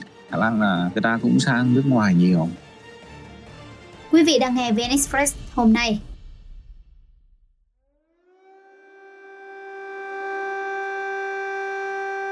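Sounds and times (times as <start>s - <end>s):
speech: 0.3s - 2.6s, 4.2s - 6.1s
air raid alarm siren: 8.0s - 12.3s.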